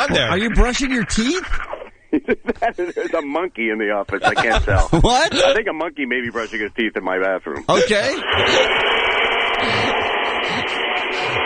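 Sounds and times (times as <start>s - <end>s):
speech: 0.0s - 9.2s
laughter: 1.2s - 3.4s, 4.0s - 5.6s, 9.6s - 11.4s
vacuum cleaner running in an office: 8.0s - 11.4s.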